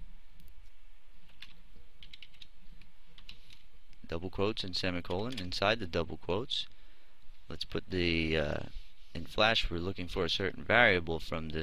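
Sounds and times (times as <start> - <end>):
typing on a computer keyboard: 1.3 - 2.5
speech: 4.1 - 6.8, 7.5 - 11.6.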